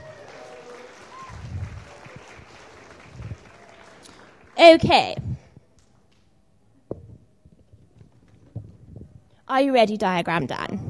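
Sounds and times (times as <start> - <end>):
loud clapping: 0.0 - 6.3
speech: 4.6 - 5.3, 9.5 - 10.8.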